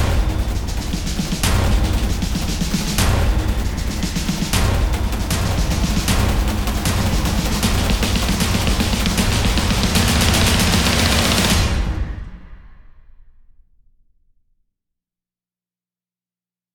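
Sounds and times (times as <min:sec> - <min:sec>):
percussion: 0:00.0 - 0:13.1.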